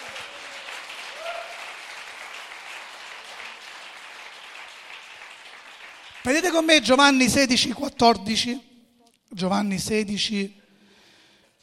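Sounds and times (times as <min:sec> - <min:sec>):
audience applauding: 0:00.0 - 0:06.7
speech: 0:06.2 - 0:08.7, 0:09.4 - 0:10.6.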